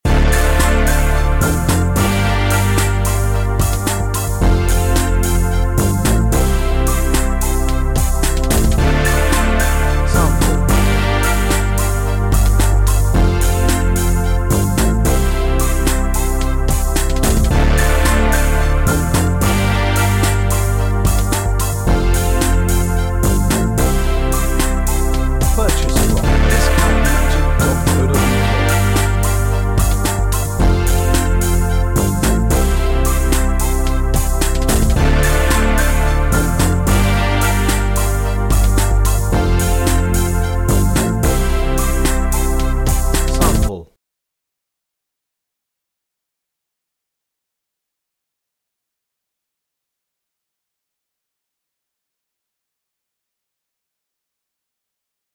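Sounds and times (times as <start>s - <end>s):
synth soul remix music: 0.0s - 43.8s.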